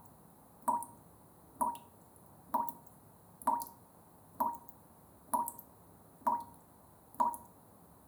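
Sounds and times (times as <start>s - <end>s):
tap dripping: 0.7s - 1.0s, 3.4s - 3.8s, 5.3s - 5.6s, 6.3s - 6.6s, 7.2s - 7.5s.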